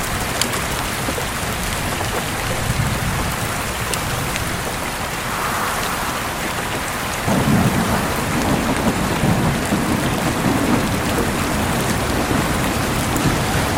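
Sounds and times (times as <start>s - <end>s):
rain: 0.0s - 13.7s
howling wind: 1.9s - 13.1s
thunder: 5.1s - 13.7s.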